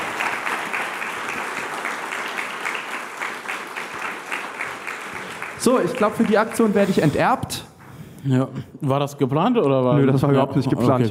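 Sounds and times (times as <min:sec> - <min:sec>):
audience applause: 0:00.0 - 0:07.5
speech: 0:05.6 - 0:11.0.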